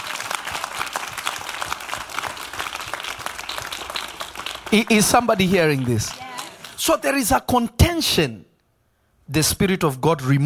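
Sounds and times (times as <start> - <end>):
crowd applauding: 0.0 - 6.9
speech: 4.7 - 6.2, 6.8 - 8.4, 9.3 - 10.4.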